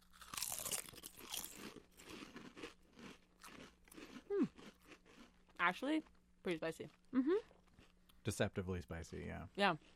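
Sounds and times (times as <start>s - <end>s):
spicy chips crunching while being chewed: 0.0s - 5.6s
speech: 5.6s - 7.5s, 8.2s - 9.9s.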